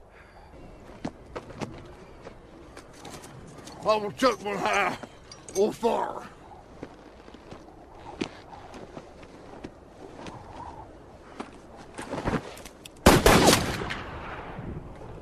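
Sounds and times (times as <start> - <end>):
speech: 3.8 - 6.3
gunshots fired at cornbread on the prairie: 13.0 - 14.4.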